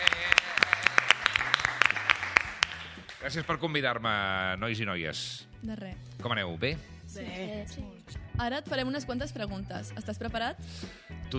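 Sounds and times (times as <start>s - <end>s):
applause welcoming a guest on a Catalan radio show: 0.0s - 3.6s
speech: 3.3s - 11.3s.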